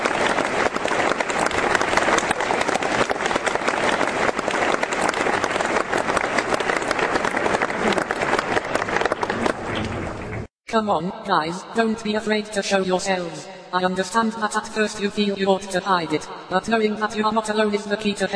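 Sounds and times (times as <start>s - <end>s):
polite round of applause: 0.0s - 10.5s
speech: 10.8s - 18.3s.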